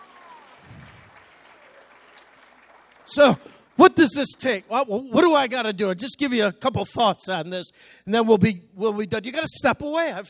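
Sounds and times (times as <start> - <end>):
audience clapping: 0.0 - 4.7
speech: 3.1 - 10.2.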